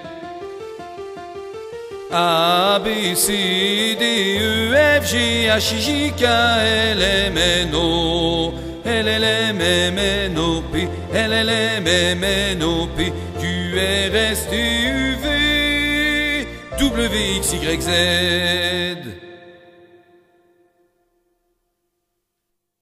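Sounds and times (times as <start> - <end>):
alto voices singing: 2.1 - 20.1.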